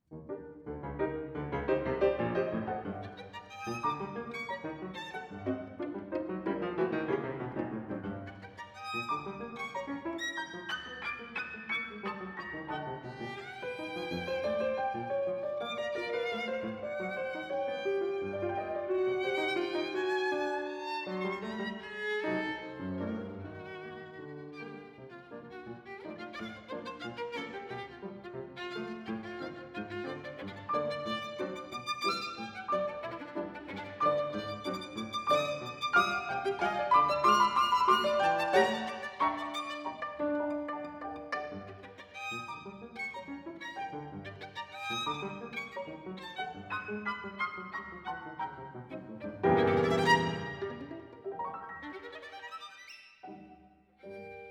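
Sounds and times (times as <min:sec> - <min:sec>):
violin and piano transcription: 0:00.0 - 0:54.5.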